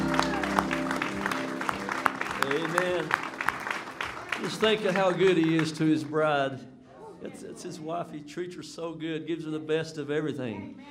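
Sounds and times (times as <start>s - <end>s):
audience clapping: 0.0s - 6.4s
speech: 2.6s - 3.2s, 4.4s - 10.9s.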